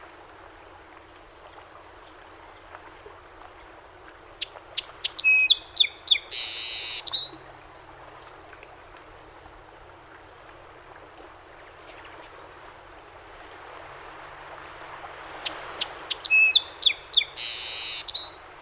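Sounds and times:
song sparrow song: 0:04.4 - 0:07.4, 0:15.4 - 0:18.6.

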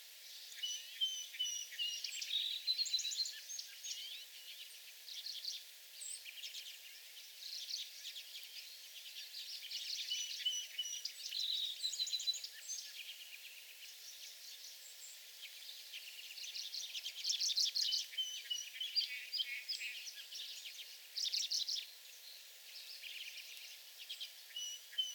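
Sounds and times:
White-throated sparrow whistled song in back shrubs: 0:00.4 - 0:04.5, 0:07.5 - 0:13.2, 0:14.0 - 0:21.9, 0:22.8 - 0:25.1.

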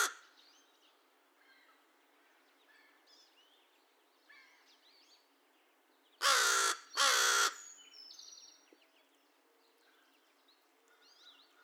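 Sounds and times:
American crow uttering raspy caws: 0:06.2 - 0:07.6.

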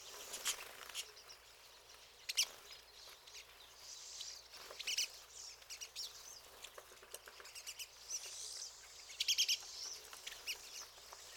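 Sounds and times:
pine siskins calling: 0:00.0 - 0:11.3.

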